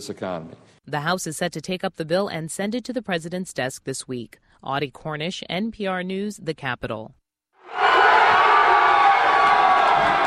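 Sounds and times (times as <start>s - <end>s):
speech: 0.0s - 7.8s
New York Yankees fans roaring in Times Square: 7.6s - 10.2s.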